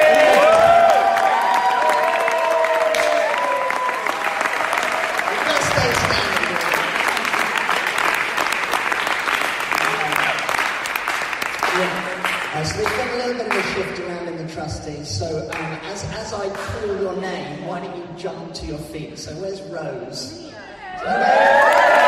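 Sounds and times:
audience cheering: 0.0s - 11.0s, 21.0s - 22.0s
audience applause: 0.0s - 14.1s, 21.0s - 22.0s.

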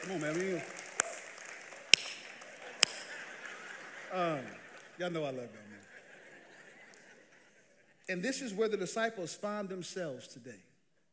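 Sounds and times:
speech: 0.0s - 0.8s, 4.1s - 5.9s, 8.1s - 10.7s
sharp isolated hand claps: 0.0s - 6.0s
laughter: 0.0s - 9.3s
faint steady hiss: 0.0s - 11.1s.

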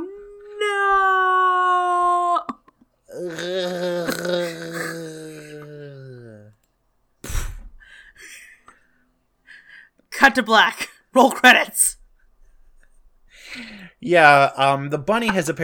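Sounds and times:
voice imitating slow-motion falling scream: 0.0s - 2.5s, 3.1s - 6.6s
speech: 10.3s - 12.0s, 14.0s - 15.6s.

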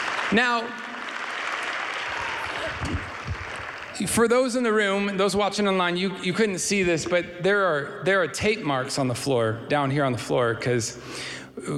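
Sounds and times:
audience applause at a live evening gathering: 0.0s - 4.2s
speech: 0.3s - 0.8s, 4.0s - 11.7s.

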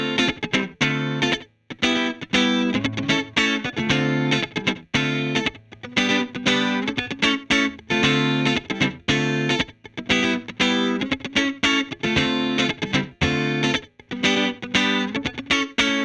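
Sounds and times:
clean electric guitar strumming chords through slapback delay: 0.0s - 16.0s.

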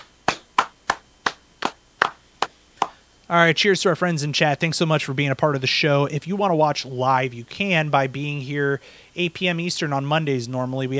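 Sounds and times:
hosts clapping hands to close the show: 0.0s - 3.0s
speech: 3.3s - 10.9s.

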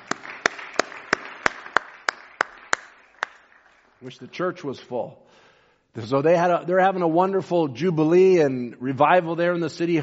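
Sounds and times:
audience clapping: 0.0s - 4.1s
speech: 4.0s - 10.0s.

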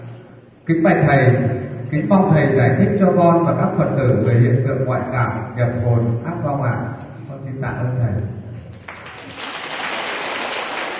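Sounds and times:
speech: 0.7s - 7.0s, 7.6s - 8.4s
Buddhist lay followers applauding at a dharma talk: 8.7s - 10.9s.

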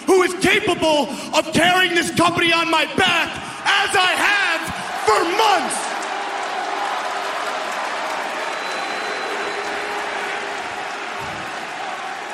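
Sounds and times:
speech: 0.3s - 4.4s, 5.1s - 5.9s
audience booing: 3.8s - 12.3s
audience clapping: 4.7s - 12.3s.

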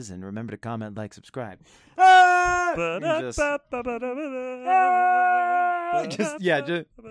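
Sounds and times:
speech: 0.0s - 7.0s
voice imitating a jazz trumpet: 2.0s - 7.0s.

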